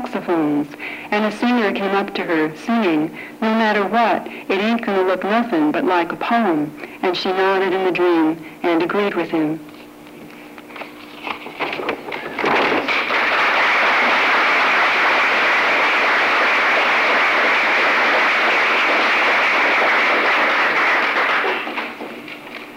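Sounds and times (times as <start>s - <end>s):
speech: 0.1s - 9.7s
crowd applause: 12.1s - 22.3s.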